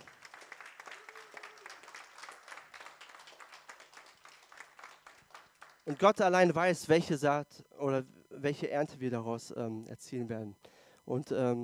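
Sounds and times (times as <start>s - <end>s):
audience applause: 0.0s - 6.1s
speech: 5.9s - 11.6s.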